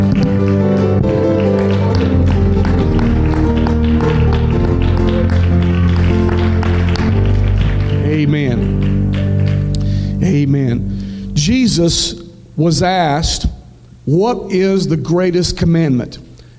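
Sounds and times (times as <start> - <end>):
crowd clapping in rhythm: 0.0 - 11.2
loud sustained music: 0.0 - 12.0
speech: 11.8 - 13.5, 14.1 - 16.2.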